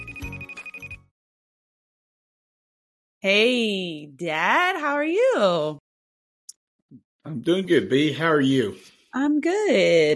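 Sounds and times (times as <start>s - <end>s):
outgoing phone call ringing tone: 0.0s - 1.1s
speech: 3.2s - 5.8s, 6.9s - 10.1s.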